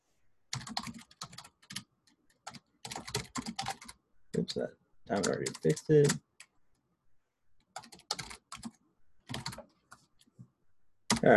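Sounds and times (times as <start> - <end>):
typing on a computer keyboard: 0.5 - 6.5, 7.6 - 10.4, 11.1 - 11.3
speech: 4.6 - 6.3.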